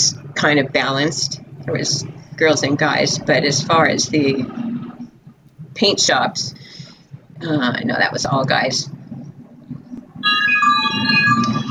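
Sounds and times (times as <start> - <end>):
speech: 0.1 - 4.7, 5.8 - 6.8, 7.4 - 9.0
wind chimes: 10.2 - 11.6.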